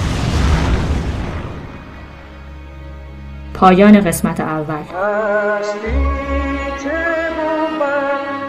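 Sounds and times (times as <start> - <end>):
explosion on a road: 0.0 - 2.5
speech: 3.6 - 8.3.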